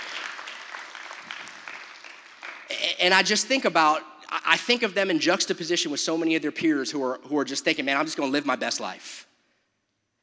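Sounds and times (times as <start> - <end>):
audience applause: 0.0 - 3.0
speech: 2.7 - 9.3.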